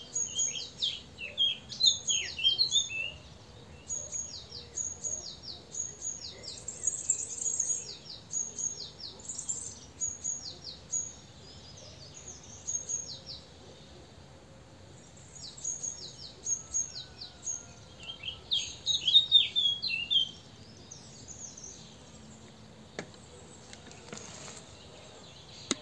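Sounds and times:
great tit whistles and twitters: 0.0s - 13.5s, 15.3s - 22.0s.

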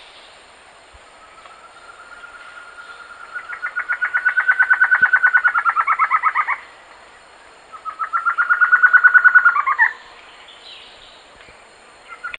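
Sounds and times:
bird trilling: 1.6s - 6.7s, 7.7s - 10.0s.

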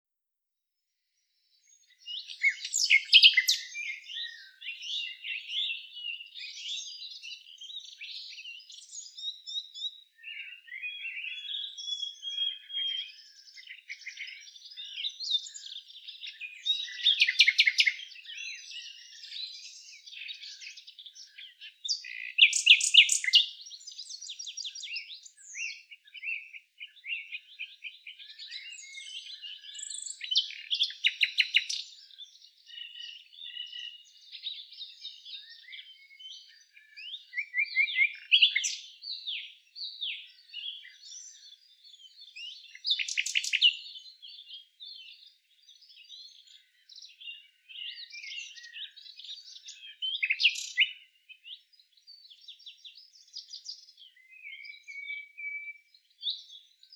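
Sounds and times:
Luscinia megarhynchos singing: 1.5s - 56.9s.

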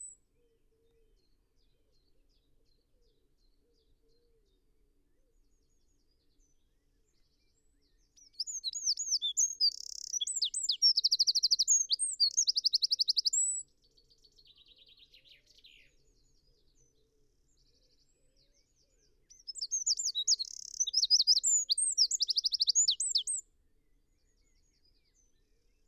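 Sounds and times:
Eurasian wren song: 7.4s - 16.9s, 17.5s - 23.4s.

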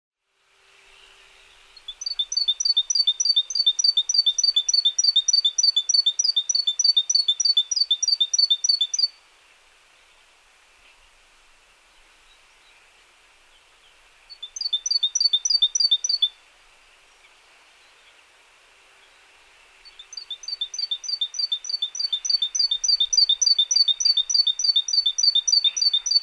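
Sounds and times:
hiss: 0.2s - 26.2s
Great tit singing: 1.8s - 9.2s, 13.5s - 16.4s, 19.8s - 26.2s.

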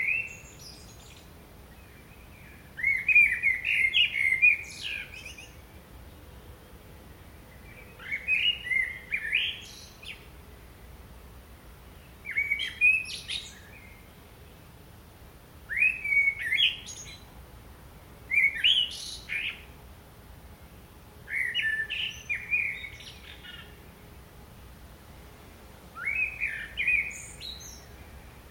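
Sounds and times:
common blackbird singing: 0.0s - 6.4s, 7.2s - 10.3s, 12.0s - 14.2s, 15.7s - 17.3s, 18.3s - 19.8s, 21.3s - 23.9s, 26.0s - 28.5s.

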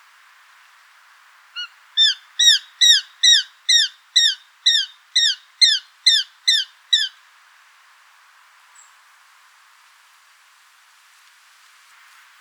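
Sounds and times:
Eurasian jay Garrulus glandarius calls: 1.6s - 7.1s.

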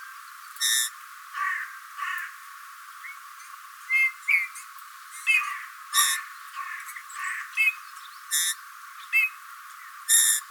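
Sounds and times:
faint chirps: 0.6s - 0.9s, 6.0s - 6.3s, 7.6s - 10.4s
Eurasian bullfinch calls: 0.6s - 1.5s, 5.2s - 9.4s, 10.1s - 10.4s.

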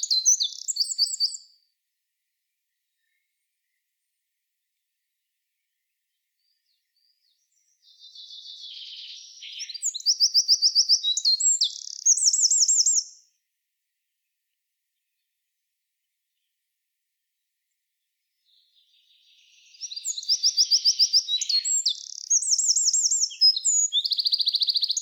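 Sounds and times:
Eurasian wren song: 0.0s - 1.4s, 7.5s - 13.2s, 18.5s - 25.0s.

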